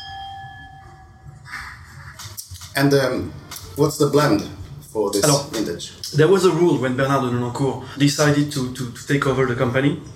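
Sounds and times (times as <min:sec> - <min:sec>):
wine glasses clinking in a toast: 0:00.0 - 0:00.8
speech: 0:02.8 - 0:10.1.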